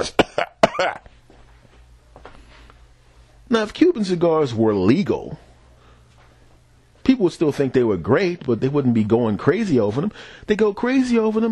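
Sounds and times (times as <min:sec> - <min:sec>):
speech: 0:00.0 - 0:01.0, 0:03.5 - 0:05.4, 0:07.2 - 0:11.5
harsh coughs: 0:00.0 - 0:01.1.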